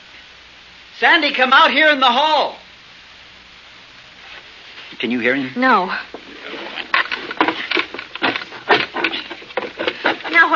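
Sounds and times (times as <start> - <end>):
speech: 1.0 - 2.6, 5.0 - 6.2, 10.4 - 10.5
screwdriver chiselling wooden door jamb: 6.5 - 10.5.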